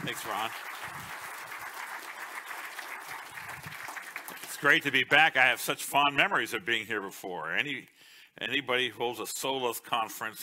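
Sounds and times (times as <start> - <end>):
speech: 0.0 - 1.2, 4.6 - 10.4
conference audience applause welcoming a pastor to the stage: 0.0 - 5.0.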